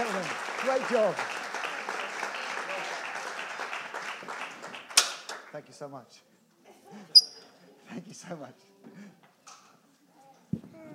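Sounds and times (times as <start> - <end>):
audience applause: 0.0 - 5.5
speech: 0.7 - 1.4, 5.5 - 6.3, 7.9 - 9.2.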